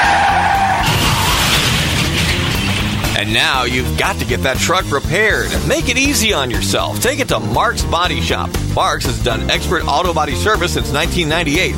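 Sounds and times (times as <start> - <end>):
vehicle tires skidding under hard braking: 0.0 - 4.1
speech: 3.2 - 11.7.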